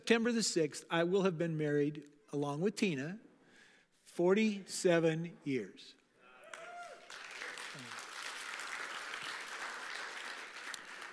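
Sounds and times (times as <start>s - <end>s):
speech: 0.1s - 3.3s, 4.1s - 6.0s
audience applause: 6.5s - 11.1s.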